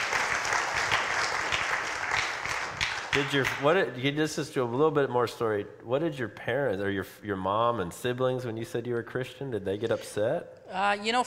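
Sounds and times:
audience clapping: 0.0s - 3.9s
speech: 3.1s - 11.2s.

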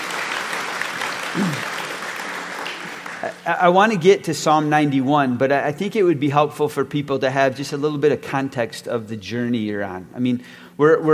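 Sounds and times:
audience applause: 0.0s - 3.4s
speech: 3.2s - 11.1s.

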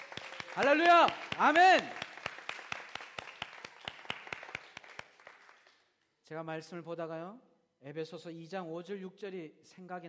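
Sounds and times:
audience applause: 0.0s - 5.8s
speech: 0.6s - 2.0s, 6.3s - 10.0s.

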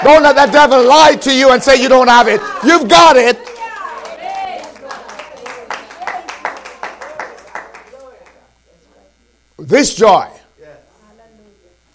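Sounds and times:
speech: 0.0s - 3.5s, 9.7s - 10.4s
audience clapping hands: 0.0s - 8.4s.

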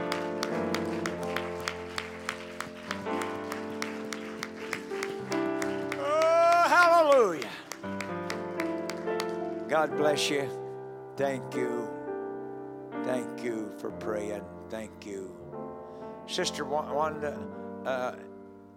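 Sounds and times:
audience clapping hands: 0.0s - 9.6s
speech: 7.1s - 7.6s, 9.8s - 10.6s, 11.2s - 12.0s, 13.1s - 15.4s, 16.3s - 18.3s.

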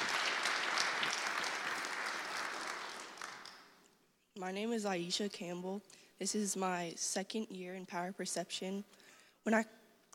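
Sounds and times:
audience applause: 0.0s - 3.8s
speech: 4.4s - 9.8s.

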